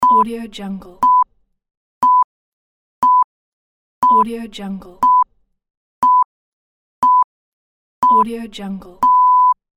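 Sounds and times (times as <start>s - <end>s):
countdown beep tones: 1.0s - 1.3s, 2.0s - 2.3s, 3.0s - 3.3s, 5.0s - 5.3s, 6.0s - 6.3s, 7.0s - 7.3s, 8.0s - 8.3s, 9.0s - 9.6s.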